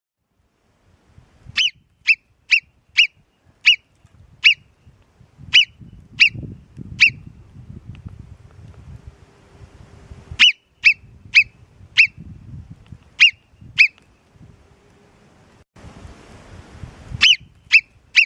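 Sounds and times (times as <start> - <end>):
Alpine marmot Marmota marmota giving shrill whistles: 1.6 - 4.7, 5.5 - 6.4, 7.0 - 7.3, 10.4 - 12.2, 13.2 - 14.0, 17.2 - 18.2.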